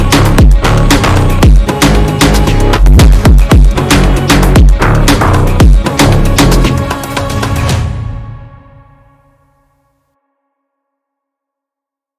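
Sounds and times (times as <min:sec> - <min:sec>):
tribal cinematic Brazilian phonk gym music: 0:00.0 - 0:08.2.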